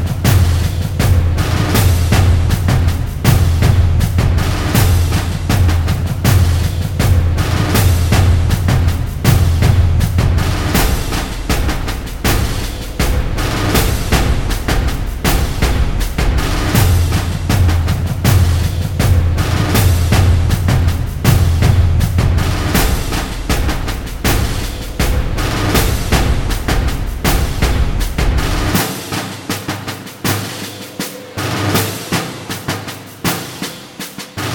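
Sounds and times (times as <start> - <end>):
drums: 0.0 - 34.5.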